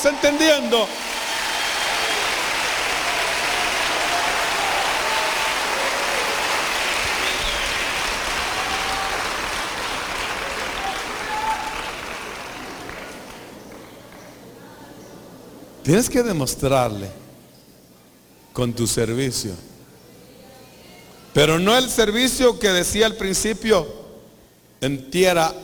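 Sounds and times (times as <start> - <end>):
speech: 0.0 - 1.0, 15.9 - 17.2, 18.6 - 19.7, 21.3 - 24.0, 24.8 - 25.6
audience applause: 0.0 - 14.4.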